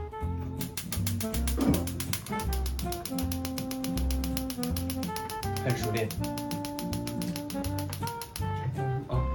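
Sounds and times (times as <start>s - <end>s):
music: 0.0s - 9.3s
stove burner igniter ticking clicks: 0.6s - 8.7s
speech: 5.6s - 6.4s.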